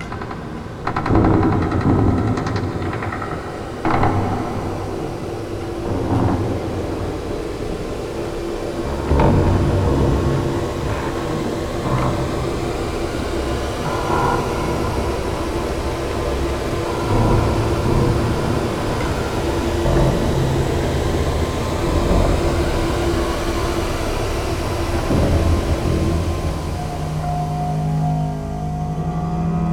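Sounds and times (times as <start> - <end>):
cinematic horror tension sound effect: 0.0 - 29.7.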